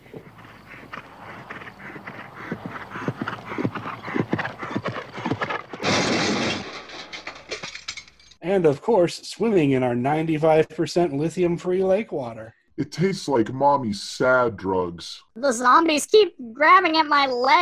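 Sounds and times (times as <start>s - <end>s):
horse whinnying: 0.0s - 6.7s
horse hooves clip-clopping: 0.0s - 7.8s
speech: 8.5s - 17.6s.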